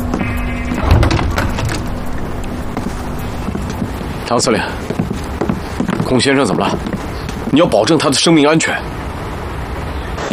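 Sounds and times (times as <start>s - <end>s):
door opening: 0.0s - 5.1s
steady hum: 0.0s - 10.3s
speech: 4.3s - 5.1s, 6.1s - 9.0s.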